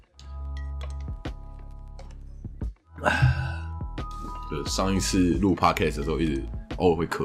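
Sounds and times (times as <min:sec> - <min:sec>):
speech: 0:03.0 - 0:03.4, 0:04.5 - 0:07.2
person drinking water: 0:03.0 - 0:03.6.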